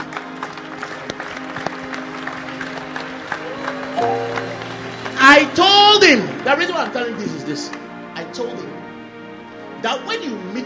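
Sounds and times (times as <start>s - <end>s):
audience applauding: 0.0s - 7.8s
speech: 5.4s - 7.8s, 8.4s - 8.7s, 9.8s - 10.6s.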